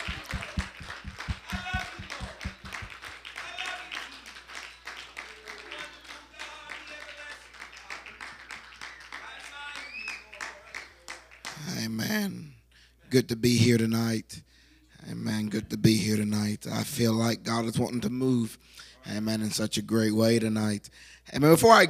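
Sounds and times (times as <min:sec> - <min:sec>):
audience clapping at a church service: 0:00.0 - 0:11.6
speech: 0:13.1 - 0:14.4, 0:15.5 - 0:21.8.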